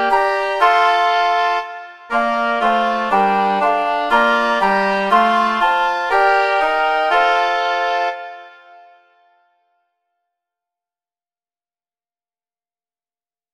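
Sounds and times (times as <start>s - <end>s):
two flutes: 0.0s - 9.6s.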